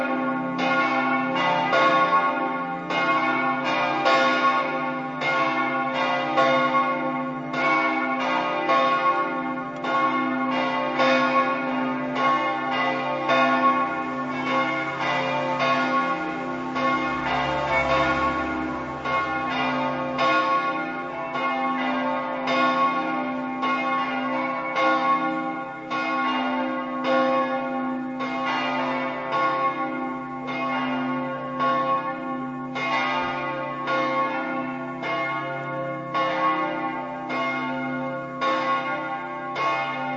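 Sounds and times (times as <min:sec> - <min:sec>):
bells ringing in Malborg: 0:00.0 - 0:40.1.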